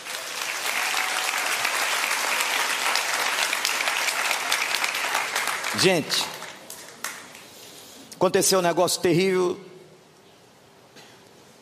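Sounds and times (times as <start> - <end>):
crowd clapping: 0.0 - 7.6
speech: 5.8 - 6.4, 8.2 - 9.7.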